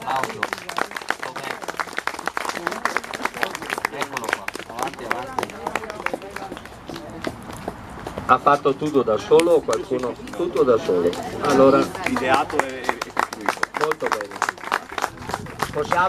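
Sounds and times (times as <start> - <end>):
audience applause: 0.0 - 6.7, 9.9 - 16.0
voices calling and murmuring: 0.0 - 16.0
speech: 8.3 - 12.8, 15.8 - 16.0.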